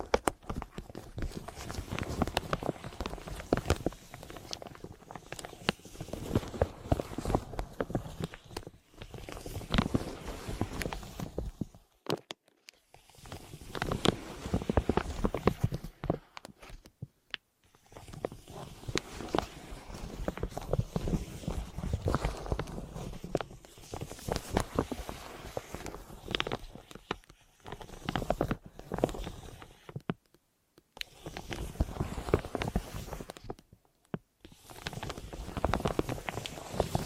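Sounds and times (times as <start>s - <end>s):
deep ear crinkles and scratchy massage sounds: 0.0s - 37.0s.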